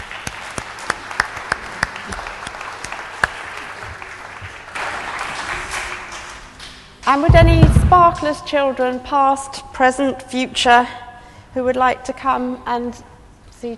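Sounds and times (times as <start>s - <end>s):
audience applause: 0.0s - 6.5s
speech: 7.1s - 11.0s, 11.6s - 13.7s.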